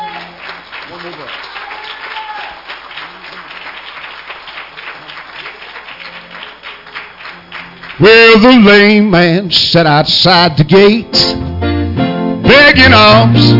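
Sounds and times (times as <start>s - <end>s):
audience clapping: 0.0s - 9.1s
speech: 0.9s - 1.5s, 8.0s - 11.4s, 12.7s - 13.5s.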